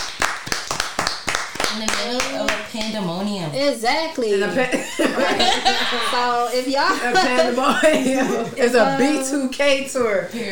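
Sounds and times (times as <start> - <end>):
brisk steady hand clapping: 0.0 - 3.0
speech: 1.8 - 10.5
laughter: 4.5 - 9.2.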